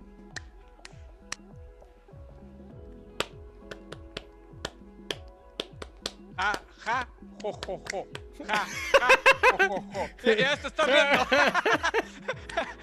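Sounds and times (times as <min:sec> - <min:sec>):
audience clapping in a rhythm: 0:03.2 - 0:08.4
laughter: 0:06.4 - 0:12.8
speech: 0:06.4 - 0:12.8.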